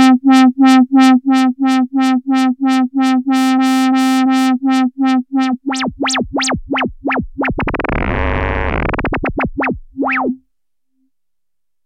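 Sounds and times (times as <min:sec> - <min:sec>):
Moog Minitaur synthesizer LFO test: 0:01.0 - 0:10.4.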